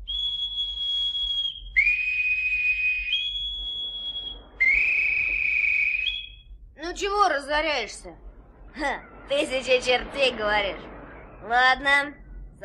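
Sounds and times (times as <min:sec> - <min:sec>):
boatswain's whistle calling all hands: 0:00.0 - 0:06.5
speech: 0:07.0 - 0:08.2, 0:08.8 - 0:12.6.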